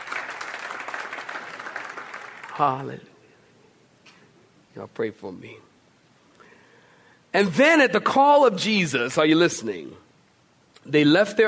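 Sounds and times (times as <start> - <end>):
audience clapping: 0.0 - 3.0
speech: 2.6 - 3.1, 4.8 - 5.7, 7.4 - 10.0, 10.8 - 11.4.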